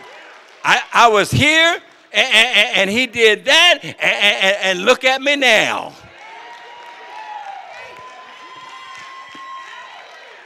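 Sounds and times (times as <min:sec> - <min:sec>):
audience clapping: 0:00.0 - 0:03.0, 0:06.1 - 0:10.4
speech: 0:00.6 - 0:06.1
laughter: 0:02.2 - 0:05.2
audience shouts and whoops: 0:06.1 - 0:10.4.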